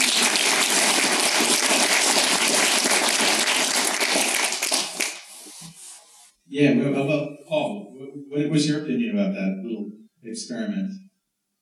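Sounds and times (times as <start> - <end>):
round of applause: 0.0 - 5.3
speech: 6.6 - 11.0.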